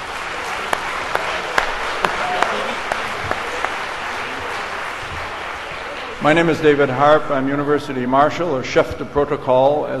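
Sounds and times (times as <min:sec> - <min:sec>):
audience applause: 0:00.0 - 0:06.8
speech: 0:06.2 - 0:09.9.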